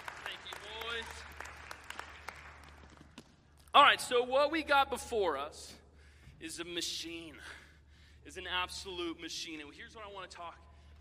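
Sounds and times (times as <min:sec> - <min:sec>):
audience applause: 0:00.0 - 0:03.2
speech: 0:03.8 - 0:05.8, 0:06.4 - 0:07.6, 0:08.2 - 0:10.9.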